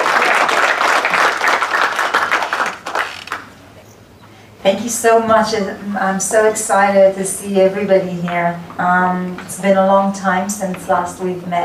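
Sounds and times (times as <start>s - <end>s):
audience applause: 0.0s - 3.6s
speech: 4.6s - 11.6s.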